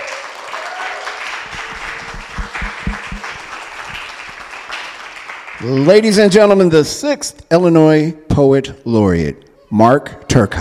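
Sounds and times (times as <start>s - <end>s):
applause: 0.0s - 6.5s
speech: 5.6s - 10.5s.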